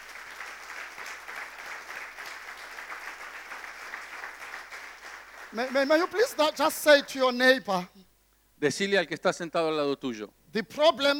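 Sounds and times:
audience clapping hands: 0.0 - 6.7
speech: 5.5 - 11.1.

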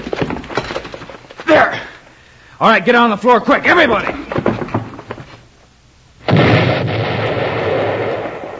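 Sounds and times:
speech: 2.6 - 4.5
dynamite explosion: 6.2 - 8.5.

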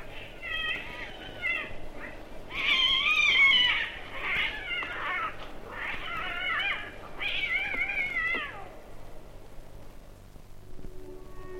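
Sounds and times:
cats caterwauling and fighting: 0.0 - 8.9.

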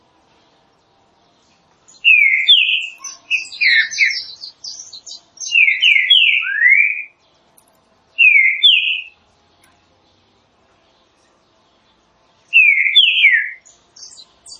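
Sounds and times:
other birds chirping: 1.4 - 9.8, 11.0 - 14.5
green-winged saltator whistling song: 1.9 - 7.2, 8.2 - 9.2, 12.5 - 14.5.

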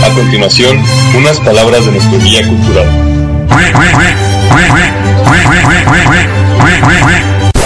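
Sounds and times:
speech: 0.2 - 7.5
duck quacking: 3.5 - 7.3.

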